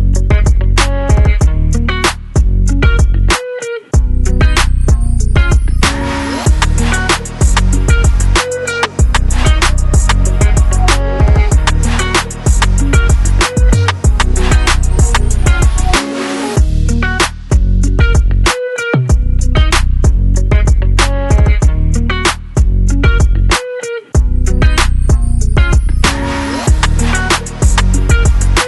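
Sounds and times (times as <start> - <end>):
pop beats: 0.0 - 28.6.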